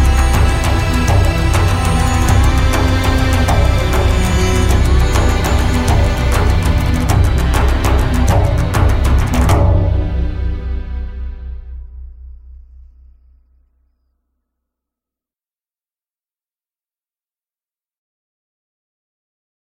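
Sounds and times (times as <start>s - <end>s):
instrumental music: 0.0s - 13.7s.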